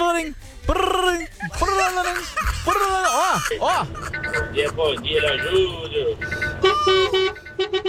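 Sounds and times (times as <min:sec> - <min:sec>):
speech: 0:00.2 - 0:00.9, 0:03.4 - 0:07.2
laughter: 0:01.4 - 0:06.2
alarm clock ringing with buzzy horn-like tones: 0:03.9 - 0:07.7.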